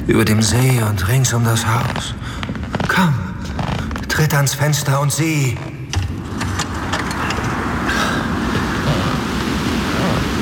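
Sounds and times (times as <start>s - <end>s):
speech: 0.1s - 3.3s, 4.2s - 5.7s
storm wind howling around a house: 6.0s - 10.4s.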